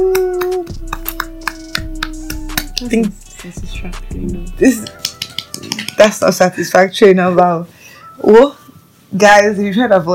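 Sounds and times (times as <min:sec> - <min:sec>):
sparse hand clapping: 0:00.1 - 0:03.0, 0:04.8 - 0:06.1
speech: 0:02.8 - 0:05.0, 0:05.6 - 0:10.1.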